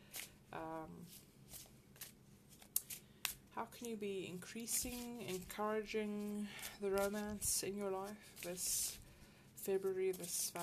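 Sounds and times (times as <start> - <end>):
playing or reading cards being shuffled during a love reading: 0.1 - 0.4, 1.1 - 3.4, 4.6 - 9.0, 9.8 - 10.6
speech: 0.5 - 1.7, 3.6 - 9.0, 9.6 - 10.6.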